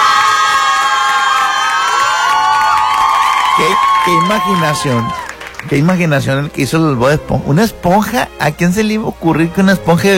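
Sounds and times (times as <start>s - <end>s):
crowd with children cheering and shouting: 0.0s - 5.4s
speech: 3.7s - 10.1s.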